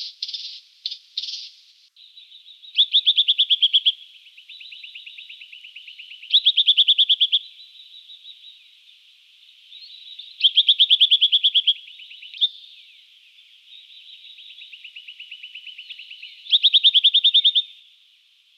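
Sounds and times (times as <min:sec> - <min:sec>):
Brown Tree Creeper calling: 0:00.0 - 0:18.5.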